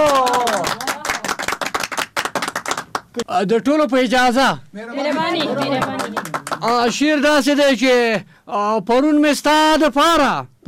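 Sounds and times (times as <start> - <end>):
audience applause for a poet coming to the stage: 0.0 - 3.2, 5.0 - 7.7
speech: 3.2 - 10.6.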